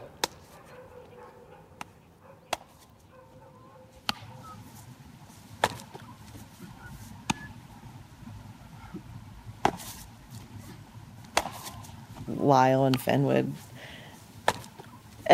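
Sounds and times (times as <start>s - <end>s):
baseball smacking into a leather glove: 0.2s - 0.6s, 1.8s - 2.8s, 4.0s - 4.5s, 5.5s - 7.5s, 9.6s - 12.3s, 14.4s - 15.0s
speech: 12.4s - 13.7s.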